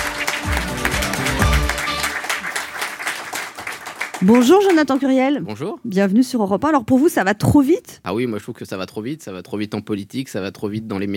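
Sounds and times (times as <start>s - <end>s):
studio audience applause: 0.0s - 5.2s
speech: 4.2s - 11.1s.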